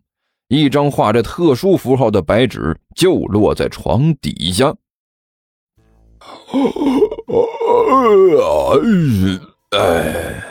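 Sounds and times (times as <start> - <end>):
speech: 0.5 - 4.8, 6.2 - 10.4
big yawn: 6.2 - 10.4.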